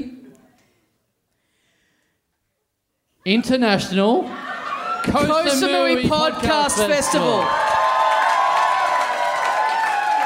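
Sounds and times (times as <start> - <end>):
speech: 3.2 - 4.4, 5.0 - 7.6
crowd whooping: 4.3 - 10.2
crowd clapping: 6.0 - 10.2.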